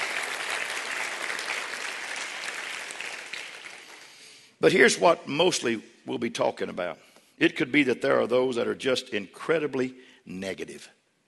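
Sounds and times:
crowd applauding: 0:00.0 - 0:04.3
speech: 0:04.6 - 0:11.0.

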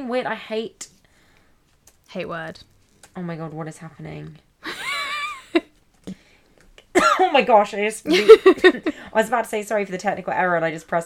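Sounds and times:
speech: 0:00.1 - 0:01.0, 0:02.1 - 0:04.5, 0:07.3 - 0:11.0
person coughing and choking: 0:07.0 - 0:07.3.

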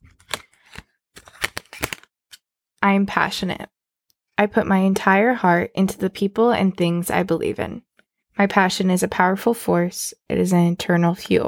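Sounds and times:
card being pulled from a deck: 0:00.0 - 0:02.4
speech: 0:02.8 - 0:03.8, 0:04.4 - 0:11.4.

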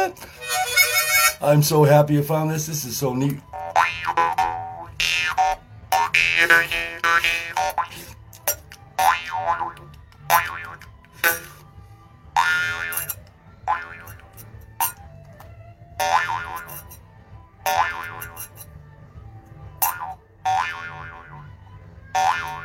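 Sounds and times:
speech: 0:00.0 - 0:00.4, 0:01.4 - 0:03.6, 0:06.1 - 0:08.2
jaw harp plucked: 0:03.5 - 0:11.5, 0:12.4 - 0:15.1, 0:16.0 - 0:17.0, 0:17.7 - 0:18.7, 0:19.8 - 0:21.4, 0:22.1 - 0:22.6.

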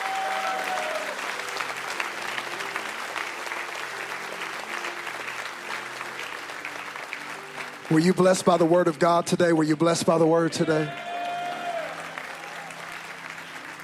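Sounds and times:
audience clapping hands in praise: 0:00.0 - 0:10.2, 0:10.8 - 0:13.8
speech: 0:07.9 - 0:11.0.

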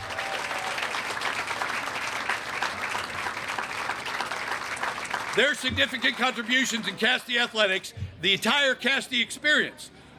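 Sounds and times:
crowd applause: 0:00.0 - 0:07.4
speech: 0:05.4 - 0:10.0.

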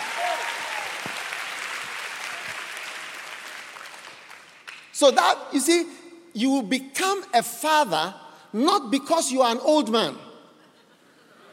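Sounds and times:
audience clapping: 0:00.0 - 0:05.2
speech: 0:05.0 - 0:10.2
laughter: 0:10.6 - 0:11.5.

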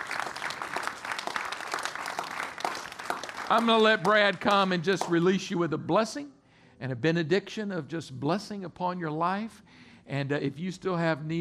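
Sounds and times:
hand clapping applause: 0:00.0 - 0:05.3
speech: 0:03.5 - 0:11.3.

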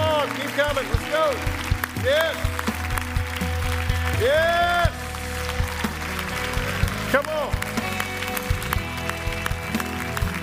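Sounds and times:
audience cheering: 0:00.0 - 0:07.7
audience clapping: 0:00.0 - 0:10.4
speech: 0:00.6 - 0:02.6, 0:04.2 - 0:04.8, 0:07.1 - 0:07.7.

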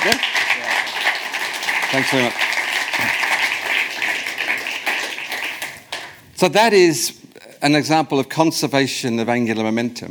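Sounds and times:
crowd applauding: 0:00.0 - 0:06.2
speech: 0:01.9 - 0:02.4, 0:06.4 - 0:10.0.

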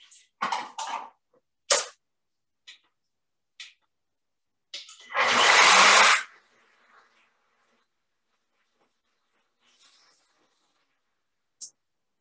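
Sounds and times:
blender mixing butter and oil into coffee: 0:05.0 - 0:06.4.

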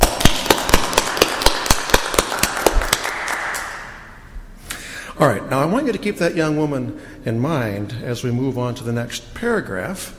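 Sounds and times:
audience applause: 0:00.0 - 0:04.1
speech: 0:05.2 - 0:10.1.

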